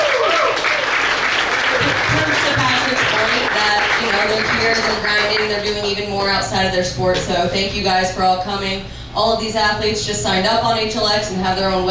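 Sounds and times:
audience cheering: 0:00.0 - 0:05.1
audience applause: 0:00.0 - 0:06.0
speech: 0:04.4 - 0:11.8.

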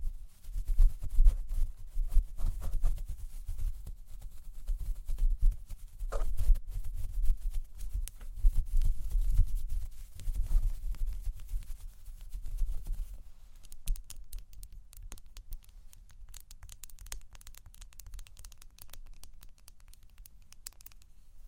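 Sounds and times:
microphone being brushed and tapped: 0:00.6 - 0:03.8, 0:04.8 - 0:13.4.

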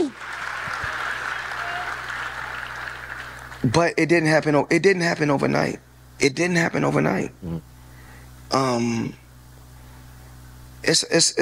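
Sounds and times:
audience applause: 0:00.0 - 0:03.7
speech: 0:03.6 - 0:07.7, 0:08.5 - 0:09.2, 0:10.9 - 0:11.4.

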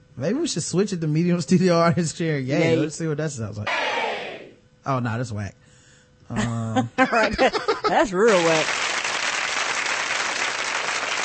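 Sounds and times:
speech: 0:00.2 - 0:04.1, 0:04.8 - 0:05.6, 0:06.3 - 0:08.8
laughter: 0:06.4 - 0:08.1
studio audience applause sound effect: 0:08.3 - 0:11.2.

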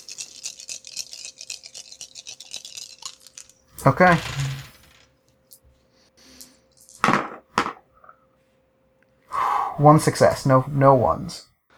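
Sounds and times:
dice being rolled: 0:00.0 - 0:05.1
speech: 0:03.8 - 0:04.4, 0:09.8 - 0:11.5.

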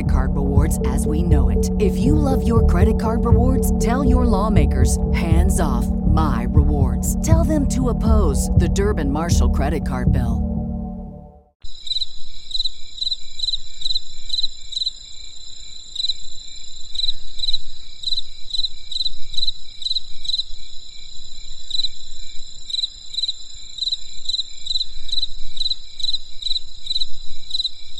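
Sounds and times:
speech: 0:00.0 - 0:10.5
low rumble: 0:00.0 - 0:11.5
insects chirping: 0:11.6 - 0:27.9.

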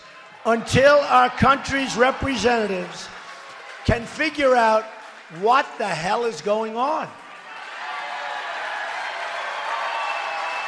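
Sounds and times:
crowd cheering at a rally: 0:00.0 - 0:10.6
speech: 0:00.4 - 0:03.2, 0:03.8 - 0:07.2.

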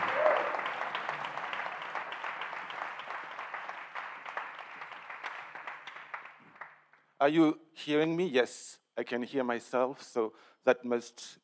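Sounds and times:
audience applause: 0:00.0 - 0:06.9
speech: 0:07.2 - 0:11.4.

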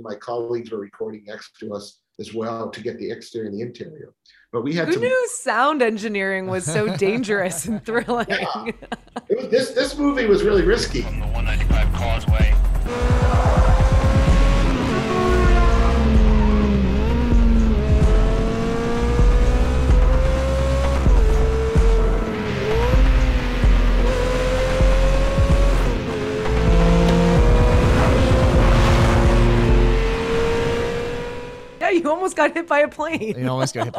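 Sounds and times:
speech: 0:00.0 - 0:13.5, 0:31.9 - 0:33.9
laughter: 0:04.6 - 0:05.4, 0:06.4 - 0:12.4, 0:32.9 - 0:33.9
Ferrari sports car roaring at speed down an airfield: 0:10.1 - 0:31.8.

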